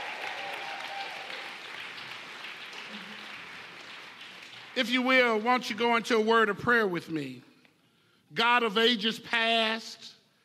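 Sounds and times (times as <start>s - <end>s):
audience clapping: 0.0s - 6.4s
speech: 4.8s - 7.5s, 8.3s - 10.1s.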